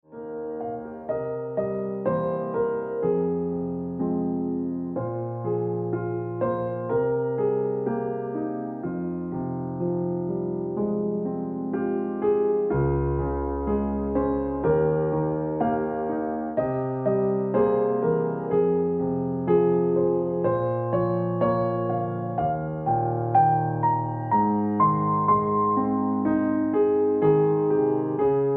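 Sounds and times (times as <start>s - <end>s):
piano ringtone music: 0.1s - 28.5s.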